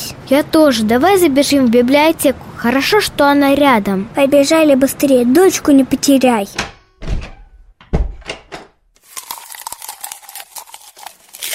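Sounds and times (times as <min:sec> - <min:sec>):
speech: 0:00.3 - 0:06.7
door slamming loudly: 0:06.5 - 0:08.8
crinkling crunching: 0:09.0 - 0:11.5.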